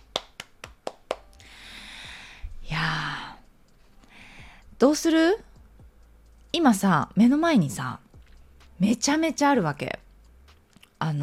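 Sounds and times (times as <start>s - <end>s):
loud clapping: 0.0s - 1.4s
speech: 4.8s - 5.5s, 6.6s - 8.0s, 8.8s - 9.9s.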